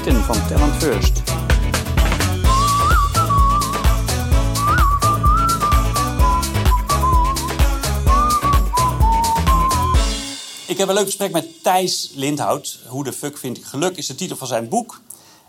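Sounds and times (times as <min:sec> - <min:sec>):
speech: 0:00.0 - 0:01.5, 0:10.7 - 0:15.2
rhythmic backing track with bass and drums: 0:00.0 - 0:11.6
whistled melody: 0:02.4 - 0:10.3.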